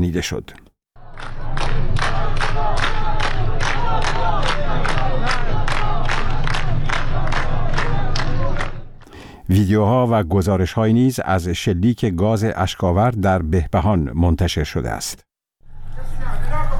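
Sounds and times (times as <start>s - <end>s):
speech: 0.0s - 0.7s, 9.5s - 15.3s
large protest crowd chanting slogans in unison: 1.0s - 9.0s.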